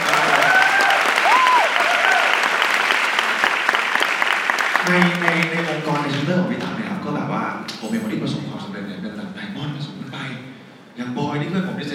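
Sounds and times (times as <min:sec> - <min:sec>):
audience applause at a business talk: 0:00.0 - 0:06.3
speech: 0:04.9 - 0:05.5, 0:06.1 - 0:11.9.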